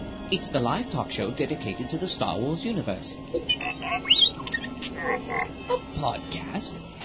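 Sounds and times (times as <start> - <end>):
speech: 0.3 - 7.0
robot droid beeping and whistling: 3.4 - 5.8.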